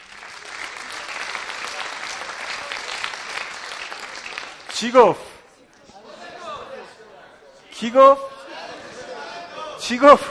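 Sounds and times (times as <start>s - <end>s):
group applauding: 0.0s - 5.5s
speech: 4.8s - 5.3s, 7.8s - 8.3s, 9.9s - 10.2s.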